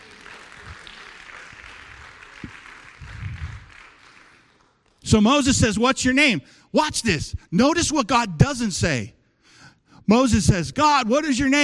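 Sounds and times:
audience clapping: 0.0 - 5.2
speech: 5.1 - 9.2, 10.1 - 11.6.

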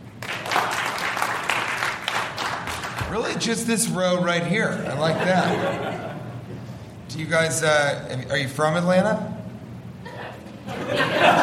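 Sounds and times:
crowd clapping: 0.0 - 3.3
speech: 3.1 - 6.1, 7.2 - 9.3
laughter: 4.7 - 6.6, 10.0 - 11.4.

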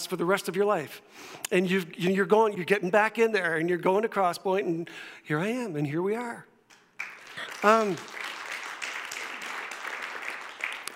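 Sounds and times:
speech: 0.0 - 6.5, 7.6 - 8.2
audience applause: 7.0 - 10.9.

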